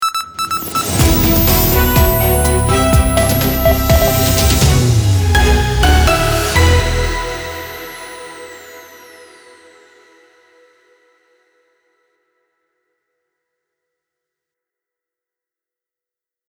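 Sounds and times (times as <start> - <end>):
news opener jingle at 124 bpm: 0.0 - 9.6.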